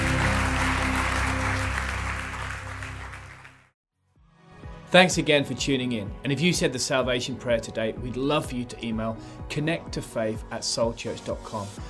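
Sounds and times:
church congregation applauding: 0.0s - 3.7s
speech: 4.9s - 11.8s.

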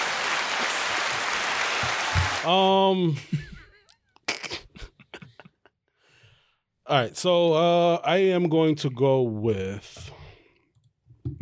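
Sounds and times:
applause sound effect: 0.0s - 2.6s
speech: 1.8s - 3.5s, 6.9s - 10.2s.

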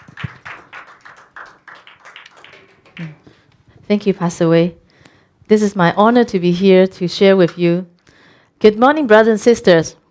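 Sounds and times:
group clapping: 0.0s - 3.5s
speech: 3.0s - 3.3s, 3.9s - 4.8s, 5.5s - 7.9s, 8.6s - 10.0s.

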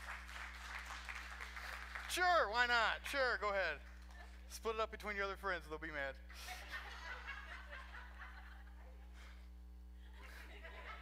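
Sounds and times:
audience hand clapping: 0.0s - 2.2s
speech: 2.1s - 3.9s, 4.5s - 6.6s
laughter: 6.3s - 9.4s, 10.0s - 11.0s.

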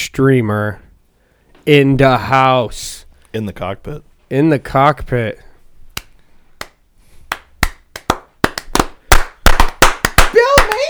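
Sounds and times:
speech: 0.1s - 0.8s, 1.6s - 5.5s
loud hand clapping: 6.0s - 10.8s.

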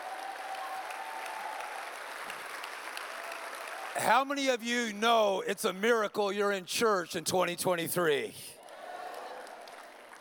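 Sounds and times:
audience clapping: 0.0s - 4.2s, 8.6s - 10.1s
speech: 4.0s - 8.6s.

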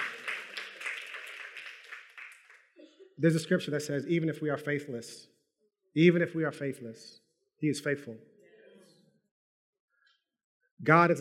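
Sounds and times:
audience applause: 0.0s - 2.7s
speech: 3.2s - 5.3s, 6.0s - 8.4s, 10.8s - 11.2s.

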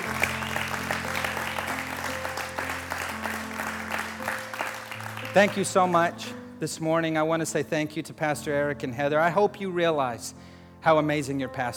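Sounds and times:
audience clapping: 0.0s - 6.2s
speech: 5.4s - 11.7s.

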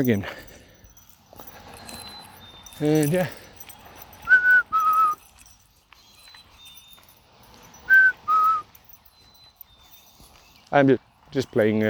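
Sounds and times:
speech: 0.0s - 0.5s, 2.8s - 3.4s, 10.7s - 11.8s
person whistling a two-note call to a pet bird: 4.3s - 5.2s, 7.9s - 8.7s.

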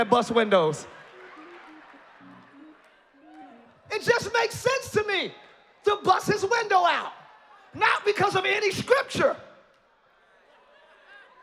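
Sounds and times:
speech: 0.0s - 1.0s, 4.0s - 9.5s
audience clapping: 0.5s - 4.8s.

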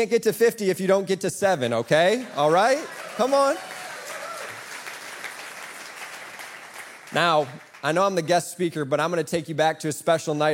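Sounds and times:
speech: 0.0s - 3.7s, 7.1s - 10.5s
audience applause: 1.9s - 8.2s.

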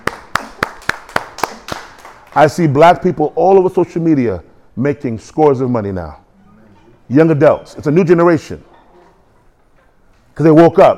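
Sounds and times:
audience clapping: 0.0s - 2.7s
speech: 2.4s - 6.2s, 7.1s - 8.7s, 10.4s - 10.9s.

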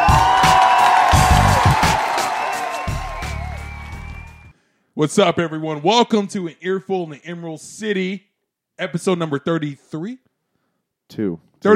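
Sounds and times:
audience cheering and whooping: 0.0s - 4.5s
speech: 5.0s - 10.3s, 11.1s - 11.7s.

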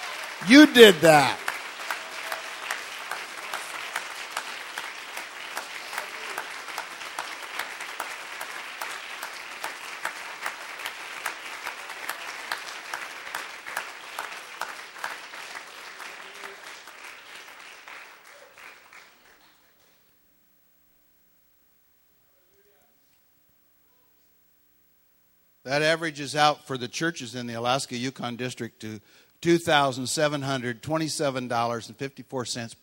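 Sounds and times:
audience applause: 0.0s - 19.5s
speech: 0.4s - 1.4s, 25.9s - 32.8s.

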